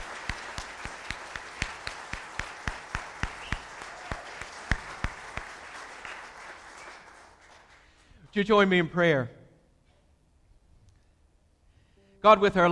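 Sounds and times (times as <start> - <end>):
audience applause: 0.0 - 8.1
speech: 8.4 - 9.4, 12.2 - 12.7.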